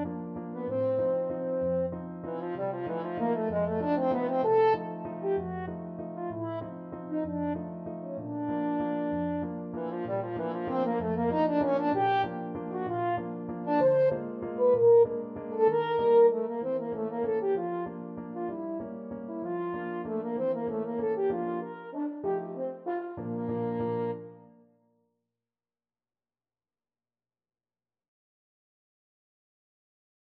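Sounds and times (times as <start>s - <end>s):
french horn playing: 0.9s - 18.8s, 19.4s - 24.2s.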